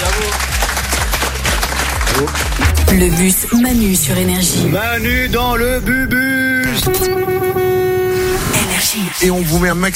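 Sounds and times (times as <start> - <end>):
audience applause for a dance crew at a live stage show: 0.0 - 3.3
speech: 2.2 - 7.6, 8.8 - 9.9.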